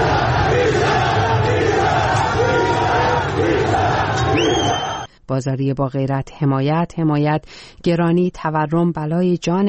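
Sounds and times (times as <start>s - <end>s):
protesters shouting chants near Baghe Sepahsalar: 0.0s - 5.1s
speech: 5.3s - 9.6s.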